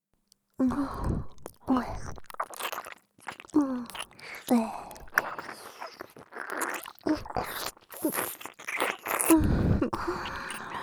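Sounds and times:
eating and chewing with wet smacks and crunchy bites: 0:01.0 - 0:10.8
soft breathy sighs: 0:09.3 - 0:10.8.

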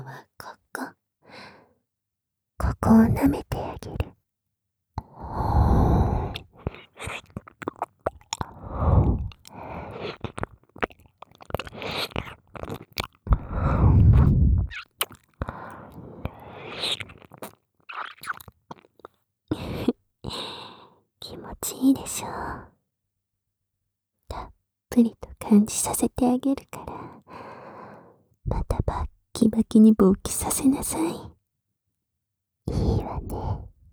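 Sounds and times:
sticky whispering: 0:02.6 - 0:04.2, 0:21.2 - 0:22.4, 0:24.3 - 0:27.0, 0:28.5 - 0:31.4, 0:32.7 - 0:33.8
ear licking: 0:06.1 - 0:19.2.

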